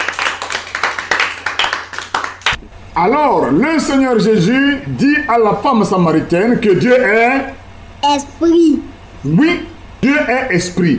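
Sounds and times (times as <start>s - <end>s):
class clapping rhythmically for a student in a Bible lesson: 0.0s - 2.6s
speech: 3.0s - 10.9s.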